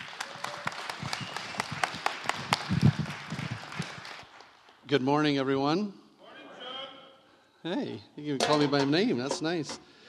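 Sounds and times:
church congregation clapping to welcome a speaker to the platform: 0.0s - 4.9s
speech: 4.9s - 6.0s, 7.6s - 9.9s.

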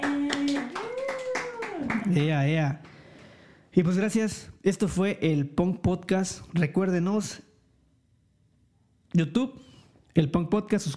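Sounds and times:
applause for the guests: 0.0s - 2.5s
speech: 2.1s - 2.9s, 3.7s - 7.5s, 9.1s - 10.9s.

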